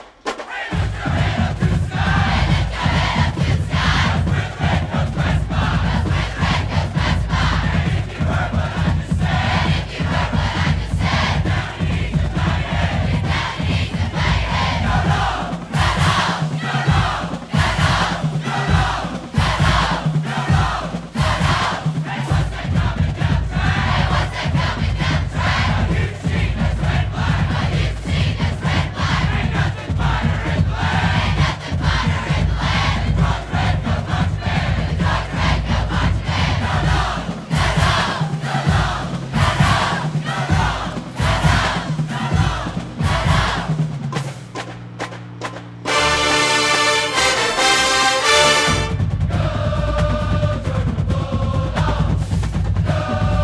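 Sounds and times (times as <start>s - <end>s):
band chant: 0.4s - 43.9s, 45.9s - 52.2s, 52.8s - 53.4s.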